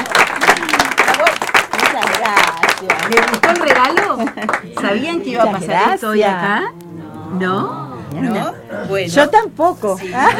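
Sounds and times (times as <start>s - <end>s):
audience applause at a presentation of an illustrated nature book: 0.0s - 5.0s
speech: 2.2s - 10.3s
laughter: 9.9s - 10.3s.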